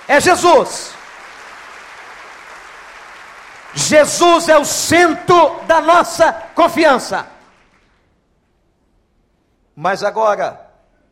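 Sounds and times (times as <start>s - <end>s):
audience applauding: 0.0s - 8.1s
speech: 0.1s - 1.0s, 3.8s - 7.3s, 9.8s - 10.6s.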